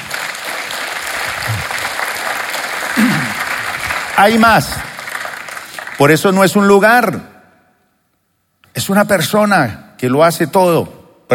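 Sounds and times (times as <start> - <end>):
audience applause: 0.0 - 6.3
speech: 4.2 - 4.8, 6.0 - 7.3, 8.8 - 11.3.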